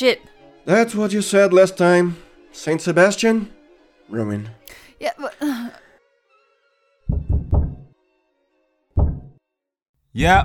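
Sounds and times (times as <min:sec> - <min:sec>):
speech: 0:00.0 - 0:05.6, 0:10.2 - 0:10.4
heavy hard knocking on a door: 0:07.1 - 0:07.9, 0:09.0 - 0:09.4.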